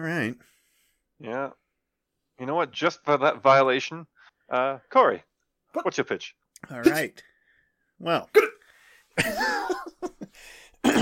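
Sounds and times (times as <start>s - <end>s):
speech: 0.0s - 0.6s, 1.2s - 1.6s, 2.4s - 7.3s, 8.0s - 8.6s, 9.2s - 11.0s
person clearing throat: 8.3s - 8.6s, 10.8s - 11.0s.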